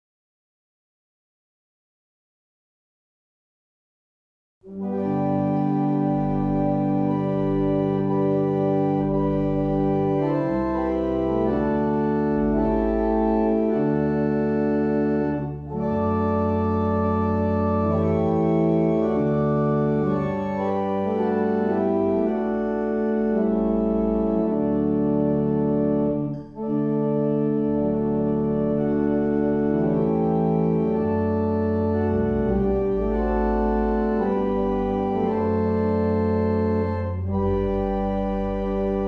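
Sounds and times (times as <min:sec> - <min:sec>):
barrel organs playing a morning hymn: 0:04.6 - 0:39.0.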